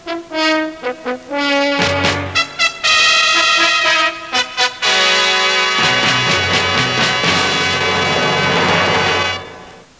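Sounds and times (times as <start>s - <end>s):
fanfare: 0.0s - 9.9s.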